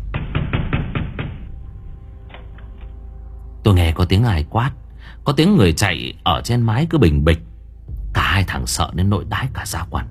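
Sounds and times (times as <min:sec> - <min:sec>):
pounding on a house door from outside: 0:00.0 - 0:01.5
speech: 0:03.7 - 0:07.5, 0:08.4 - 0:10.0.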